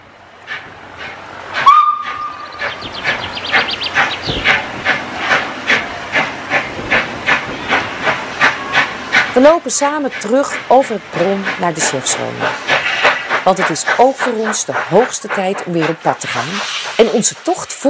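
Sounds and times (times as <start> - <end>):
steam tram exhaust chuffing: 0.4 - 17.8
steam tram whistle: 1.6 - 2.5
speech: 9.4 - 12.7, 13.5 - 17.8.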